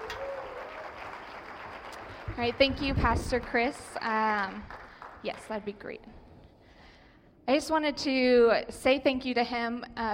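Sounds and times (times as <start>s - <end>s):
crowd applause: 0.0s - 2.7s
speech: 2.4s - 6.2s, 7.5s - 10.1s.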